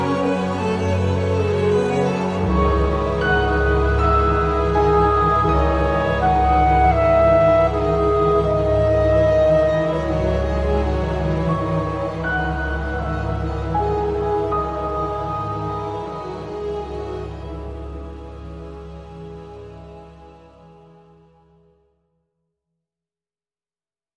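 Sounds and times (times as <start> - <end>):
short clarinet melody: 0.0 - 18.0
short violin melody: 0.0 - 21.0.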